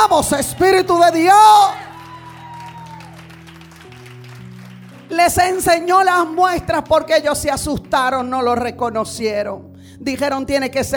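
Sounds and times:
audience applauding: 0:00.0 - 0:06.3
speech: 0:00.2 - 0:01.8, 0:05.1 - 0:10.9.

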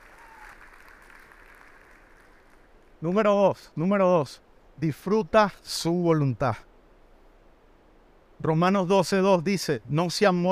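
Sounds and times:
audience applause: 0:00.0 - 0:02.8
speech: 0:03.0 - 0:06.7, 0:08.4 - 0:10.4.

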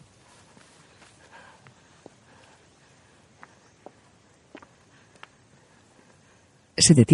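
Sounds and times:
footsteps crossing a grassy field: 0:00.0 - 0:05.4
faint hiss: 0:00.0 - 0:07.1
speech: 0:06.8 - 0:07.1.

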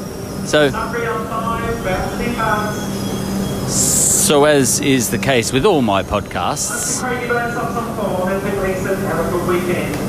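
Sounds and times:
brief sharp high-pitched squeal: 0:00.0 - 0:07.0
steady low rumble of trains at a busy railway station: 0:00.0 - 0:10.0
indistinct voices chattering: 0:00.3 - 0:09.9
speech: 0:00.5 - 0:03.1, 0:03.7 - 0:10.0.

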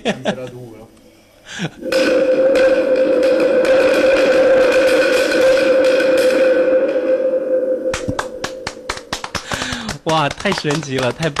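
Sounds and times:
speech: 0:00.0 - 0:00.6, 0:01.5 - 0:02.1, 0:10.2 - 0:11.3
wind drum imitating stormy wind: 0:01.8 - 0:09.4
sharp clicks: 0:07.9 - 0:11.3.

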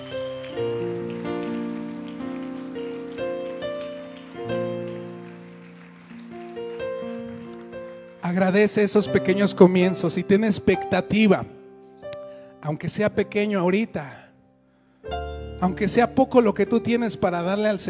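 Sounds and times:
audience applauding: 0:00.0 - 0:09.1
sustained keyboard chords: 0:00.0 - 0:14.1, 0:15.0 - 0:17.8
speech: 0:08.3 - 0:11.6, 0:12.7 - 0:14.2, 0:15.0 - 0:17.8.

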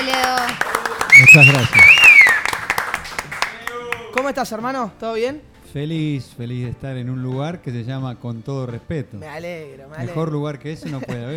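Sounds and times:
audience clapping: 0:00.0 - 0:04.4
sharp falling whistle: 0:01.1 - 0:02.6
speech: 0:01.2 - 0:02.0, 0:04.2 - 0:11.3.

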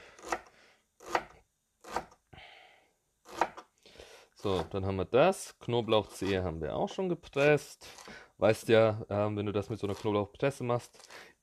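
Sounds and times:
knife finely dicing food on board: 0:00.2 - 0:02.2, 0:03.3 - 0:03.6
speech: 0:04.4 - 0:11.4.

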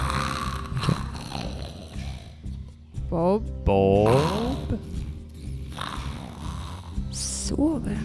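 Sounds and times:
gurgling snore-like sound: 0:00.0 - 0:02.5, 0:04.0 - 0:07.4
speech: 0:03.1 - 0:04.9.

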